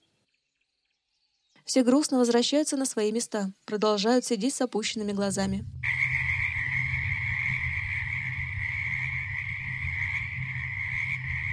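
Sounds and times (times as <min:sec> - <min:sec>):
speech: 0:01.6 - 0:05.8
chorus of frogs croaking in a swamp in the late evening: 0:04.8 - 0:11.5.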